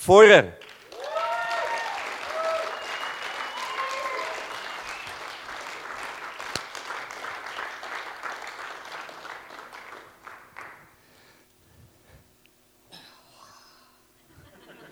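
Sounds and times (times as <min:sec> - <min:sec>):
audience applause: 0:00.6 - 0:10.9
laughter: 0:14.2 - 0:14.9.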